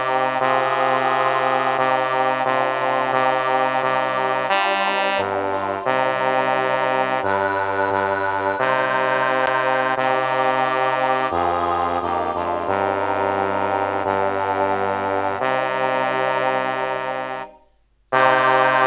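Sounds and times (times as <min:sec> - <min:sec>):
bass voices chanting: 0:00.0 - 0:17.6.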